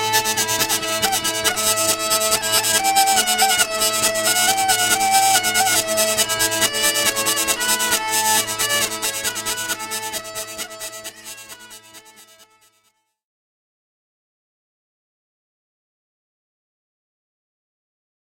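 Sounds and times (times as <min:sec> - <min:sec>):
Hungarian hurdy-gurdy: 0:00.0 - 0:13.0.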